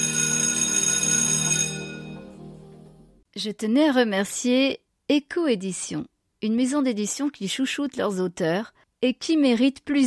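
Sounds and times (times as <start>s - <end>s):
school bell ringing at end of day: 0.0s - 2.3s
speech: 3.4s - 10.0s.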